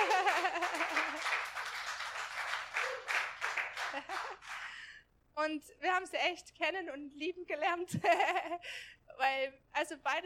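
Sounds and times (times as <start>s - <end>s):
audience applause: 0.0s - 4.8s
speech: 5.4s - 10.2s.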